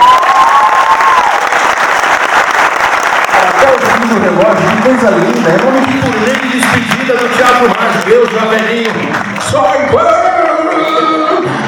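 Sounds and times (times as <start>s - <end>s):
audience applause: 0.0s - 11.6s
speech: 4.2s - 10.3s.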